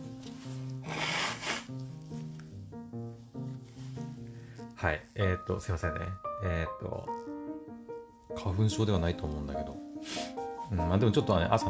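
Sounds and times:
person blowing their nose: 0.8 - 1.9, 10.0 - 10.5
speech: 4.8 - 7.3, 8.4 - 11.6.

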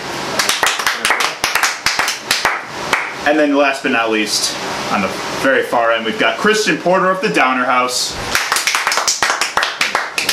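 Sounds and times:
applause: 0.4 - 3.2, 8.3 - 10.3
speech: 3.3 - 8.4.

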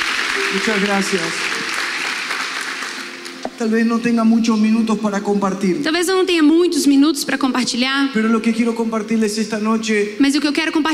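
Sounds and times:
audience applause: 0.0 - 3.4
speech: 0.5 - 1.6, 3.6 - 10.9.

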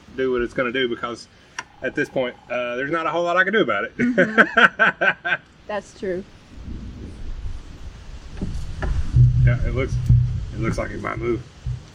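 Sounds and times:
speech: 0.2 - 6.4, 9.5 - 11.5
strong wind: 1.6 - 3.8, 6.0 - 11.9
laughter: 4.0 - 5.4.

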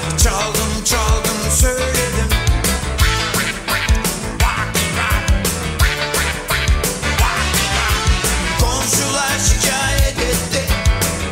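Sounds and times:
loud driving band music: 0.0 - 11.3
duck quacking: 3.0 - 9.2.

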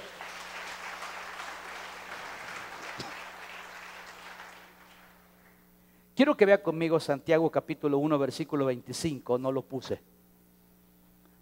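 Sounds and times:
audience applause: 0.0 - 5.3
speech: 6.2 - 10.2.

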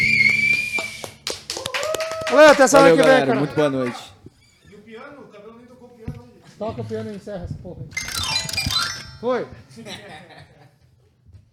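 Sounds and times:
applause: 0.0 - 4.1
speech: 2.3 - 4.1, 6.6 - 8.1, 9.2 - 10.5
laughter: 9.7 - 10.8.

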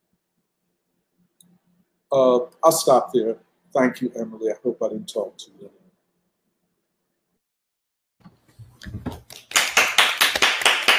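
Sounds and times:
speech: 1.6 - 5.8
people clapping: 8.9 - 10.9.

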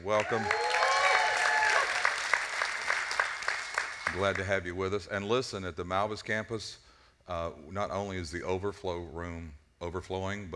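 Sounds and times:
speech: 0.0 - 0.7, 4.1 - 10.5
excited whoops and cheers: 0.0 - 2.4
crowd clapping: 0.0 - 4.5.

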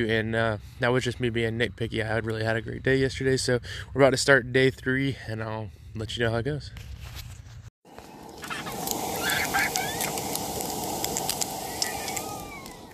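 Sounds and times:
speech: 0.0 - 7.0
bacon frying in a pan over a campfire: 8.2 - 12.9.

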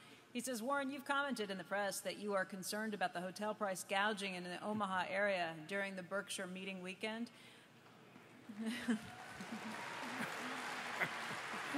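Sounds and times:
speech: 0.4 - 7.6, 8.5 - 10.0
audience applause: 9.0 - 11.7.

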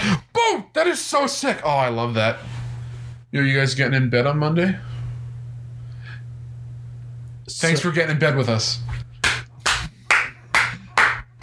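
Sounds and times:
speech: 0.1 - 2.6, 3.3 - 4.9, 7.5 - 9.0
round of applause: 9.2 - 11.4.

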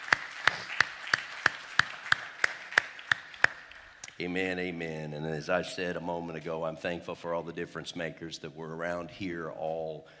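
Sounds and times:
audience applauding, hand clapping: 0.0 - 4.2
speech: 4.2 - 10.1.

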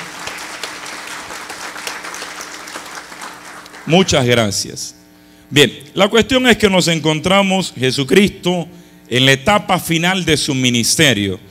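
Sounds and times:
crowd applauding: 0.0 - 4.3
speech: 3.9 - 11.5.

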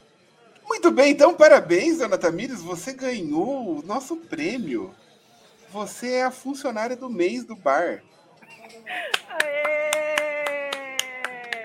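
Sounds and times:
speech: 0.8 - 5.0, 5.7 - 9.8
sharp hand claps: 9.0 - 11.6.

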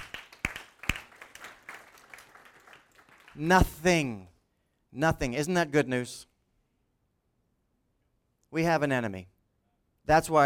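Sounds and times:
audience clapping: 0.0 - 3.7
speech: 3.4 - 4.3, 4.9 - 6.3, 8.5 - 9.3, 10.1 - 10.4.

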